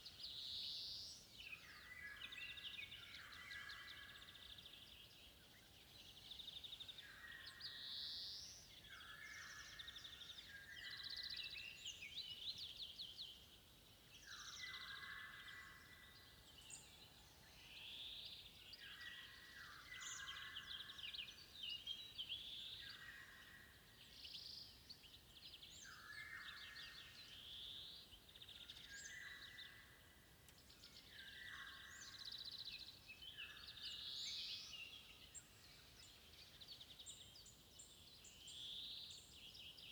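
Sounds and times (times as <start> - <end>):
golden oriole birds: 0.0 - 39.9.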